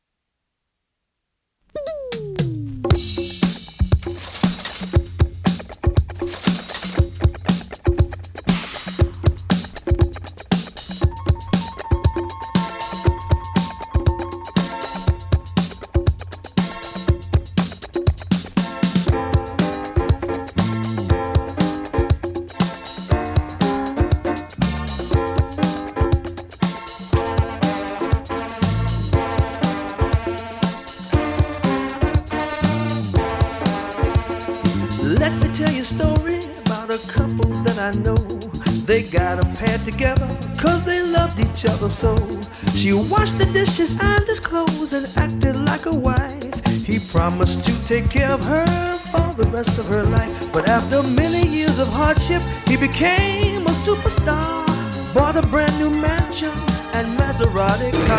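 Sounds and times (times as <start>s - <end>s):
deep disco music: 1.8s - 58.1s.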